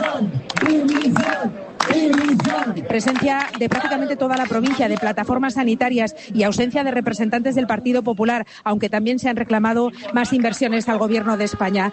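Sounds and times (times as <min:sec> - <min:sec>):
protest crowd shouting: 0:00.0 - 0:04.2, 0:10.7 - 0:11.9
speech: 0:02.9 - 0:11.9.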